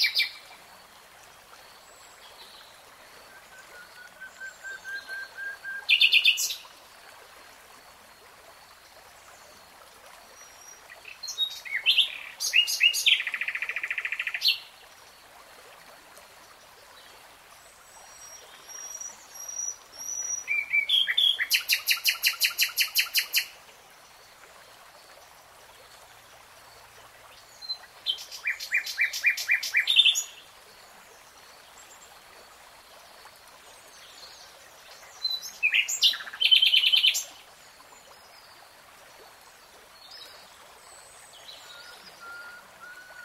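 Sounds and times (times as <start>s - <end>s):
nightingale song: 0.0s - 0.6s, 2.0s - 6.7s, 10.4s - 14.7s, 18.0s - 23.6s, 27.4s - 30.5s, 34.0s - 37.4s, 40.0s - 43.2s.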